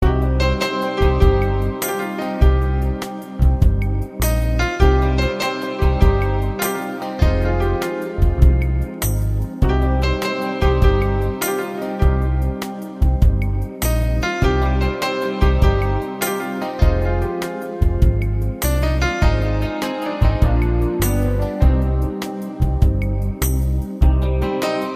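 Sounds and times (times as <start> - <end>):
instrumental music: 0.0 - 24.9.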